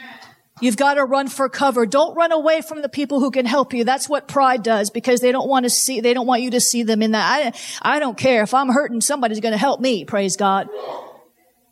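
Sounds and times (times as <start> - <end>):
speech: 0.6 - 11.1
sneeze: 10.7 - 11.3.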